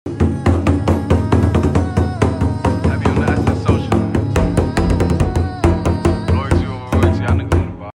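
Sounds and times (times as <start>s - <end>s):
nagara drum: 0.1s - 7.9s.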